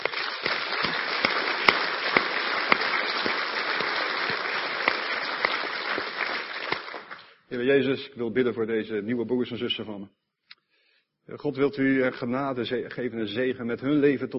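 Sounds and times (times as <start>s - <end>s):
audience applause: 0.0s - 7.3s
speech: 7.5s - 10.2s, 11.3s - 14.3s.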